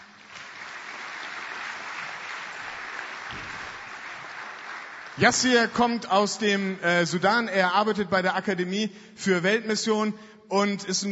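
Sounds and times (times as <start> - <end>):
audience clapping: 0.0 - 6.4
speech: 5.2 - 11.1.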